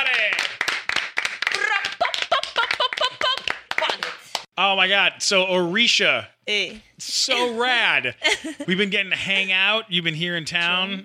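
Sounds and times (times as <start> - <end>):
audience applause: 0.0 - 4.4
laughter: 2.0 - 4.1, 7.4 - 9.5
speech: 4.6 - 11.0.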